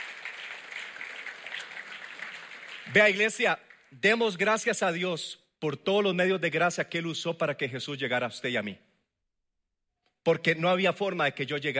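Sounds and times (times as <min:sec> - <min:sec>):
church congregation applauding during an evening service: 0:00.0 - 0:04.4
speech: 0:02.9 - 0:08.9, 0:10.3 - 0:11.7.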